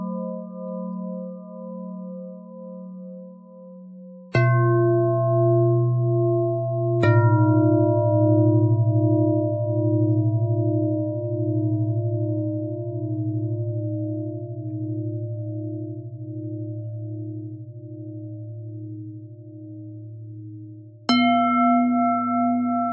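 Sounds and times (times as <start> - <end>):
pentatonic bell melody: 4.4 - 16.4, 21.1 - 22.9.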